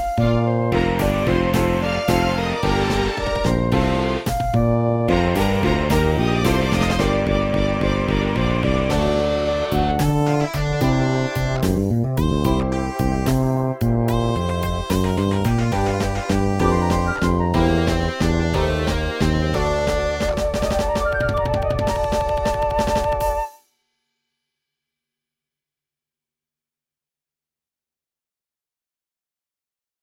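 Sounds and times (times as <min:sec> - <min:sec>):
flute: 0:00.0 - 0:13.5, 0:14.1 - 0:23.7
fretless bass: 0:00.0 - 0:23.4
Steinway piano: 0:00.0 - 0:23.5.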